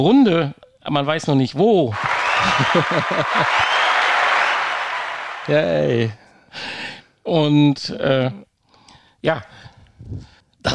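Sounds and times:
speech: 0.0 - 3.8, 5.5 - 8.5, 9.2 - 10.7
people cheering in the studio: 1.9 - 6.1
laughter: 2.0 - 5.0.

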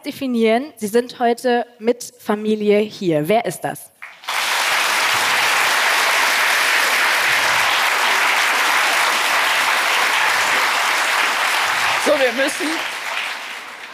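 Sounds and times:
speech: 0.0 - 3.9
large audience clapping: 4.0 - 13.9.

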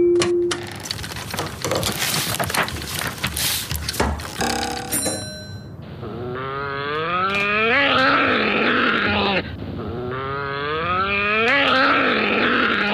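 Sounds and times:
noisy rustling: 0.7 - 5.3
brief ringing chime: 4.4 - 5.8
angry badger growling: 6.0 - 12.9.

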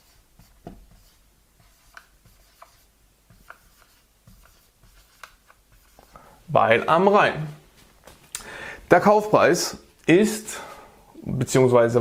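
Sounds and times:
note being written by hand: 0.0 - 6.1
speech: 6.5 - 7.6, 8.9 - 10.7, 11.3 - 11.9.

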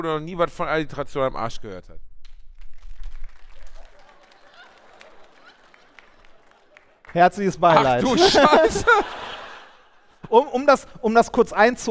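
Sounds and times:
speech: 0.0 - 2.1, 7.1 - 9.2, 10.3 - 11.8
audience clapping hands: 2.2 - 9.8
laughter: 3.8 - 10.6.

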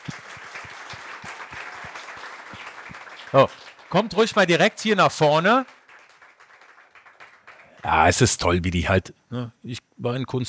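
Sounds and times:
audience applause for children: 0.0 - 8.2
speech: 3.3 - 5.7, 7.9 - 10.4.

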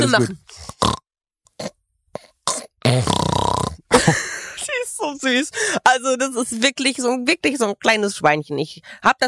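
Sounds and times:
speech: 0.0 - 0.6, 4.0 - 4.3, 5.1 - 9.2
snoring: 0.5 - 1.0, 1.6 - 3.9.

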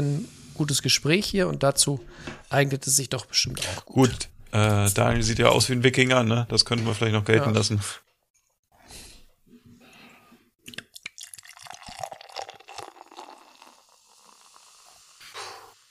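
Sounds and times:
speech: 0.0 - 8.0
drink being poured into a glass: 10.7 - 15.2.

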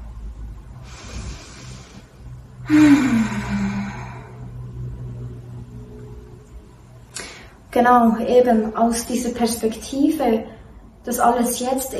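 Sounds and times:
deep breathing together: 0.7 - 5.0
speech: 2.7 - 3.2, 7.8 - 11.9.

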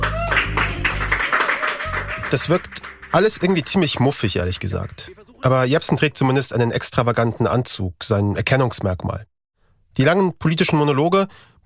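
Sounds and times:
applause: 0.0 - 5.2
speech: 2.3 - 9.3, 10.0 - 11.6.

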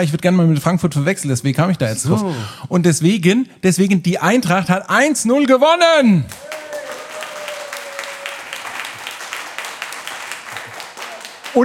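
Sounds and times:
speech: 0.0 - 6.7
audience clapping: 6.3 - 11.6.

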